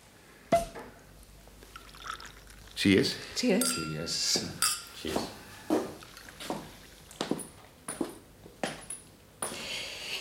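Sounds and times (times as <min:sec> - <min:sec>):
soft champagne fizz: 0:01.6 - 0:03.4, 0:05.4 - 0:07.2
champagne poured into a glass: 0:01.7 - 0:03.2
speech: 0:02.8 - 0:05.4.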